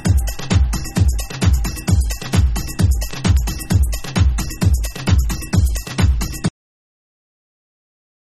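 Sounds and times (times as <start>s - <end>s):
tribal tool mix dance track: 0.0s - 6.5s.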